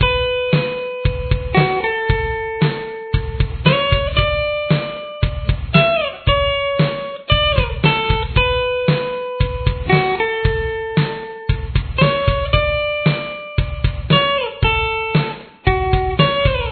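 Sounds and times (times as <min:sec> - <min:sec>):
guitar playing a verse: 0:00.0 - 0:16.7.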